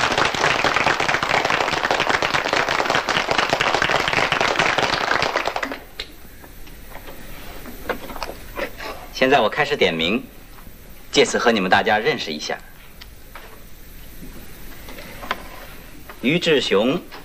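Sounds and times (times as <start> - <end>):
class of students clapping hands: 0.0 - 6.0
speech: 9.2 - 10.4, 11.2 - 12.7, 16.2 - 17.2.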